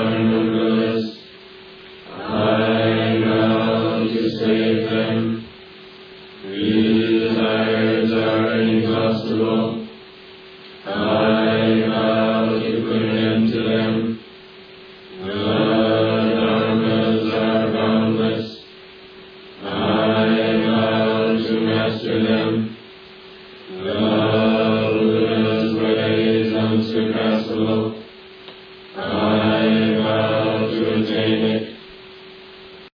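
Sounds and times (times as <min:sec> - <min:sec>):
end chant: 0:00.0 - 0:01.3, 0:02.0 - 0:05.5, 0:06.4 - 0:10.0, 0:10.8 - 0:14.3, 0:15.1 - 0:18.7, 0:19.6 - 0:22.8, 0:23.7 - 0:28.1, 0:28.9 - 0:31.8.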